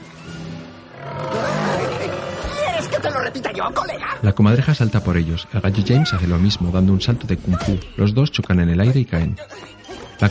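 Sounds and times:
lion roaring: 0:00.9 - 0:03.4
speech: 0:03.0 - 0:10.2.

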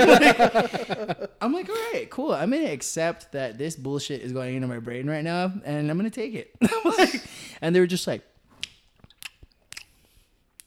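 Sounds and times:
laughter: 0:00.0 - 0:01.4
speech: 0:00.0 - 0:08.3
person imitating people smacking their teeth while chewing: 0:08.6 - 0:10.6.

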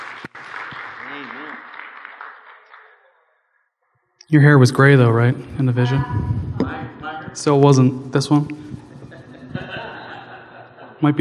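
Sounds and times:
audience hand clapping: 0:00.0 - 0:03.2
speech: 0:04.3 - 0:06.5, 0:07.4 - 0:08.7, 0:11.0 - 0:11.1
laughter: 0:08.8 - 0:11.1.

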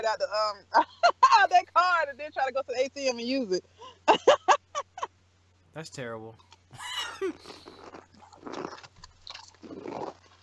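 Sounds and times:
speech: 0:00.0 - 0:04.5, 0:05.8 - 0:08.9
steady low hum: 0:00.0 - 0:10.4
wet crunchy chewing while eating berries and cream: 0:06.4 - 0:10.4.

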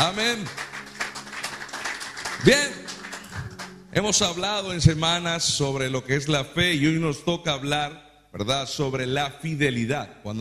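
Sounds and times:
speech: 0:00.0 - 0:00.6, 0:02.4 - 0:02.8, 0:03.9 - 0:10.3
applause: 0:00.0 - 0:04.3.

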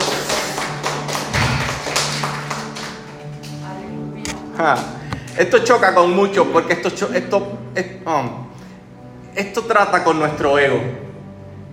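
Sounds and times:
audience applause: 0:00.0 - 0:03.6
speech: 0:04.6 - 0:08.5, 0:09.4 - 0:11.0.

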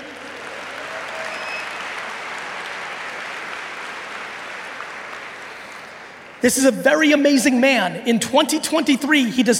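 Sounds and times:
audience applause: 0:00.0 - 0:06.4
speech: 0:06.4 - 0:09.5.

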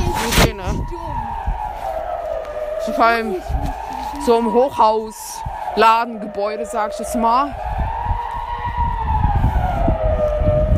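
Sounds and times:
civil defense siren test alarm: 0:00.0 - 0:10.7
speech: 0:03.0 - 0:07.7.

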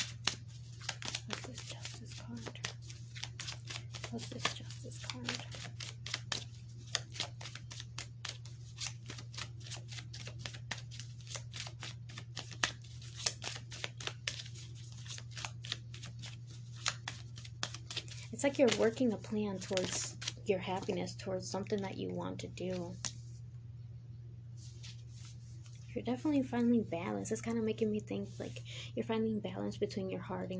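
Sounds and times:
tarot cards being shuffled and handled: 0:00.0 - 0:21.8
low steady hum: 0:00.0 - 0:30.5
speech: 0:04.1 - 0:05.7, 0:18.4 - 0:23.1, 0:26.0 - 0:30.5.

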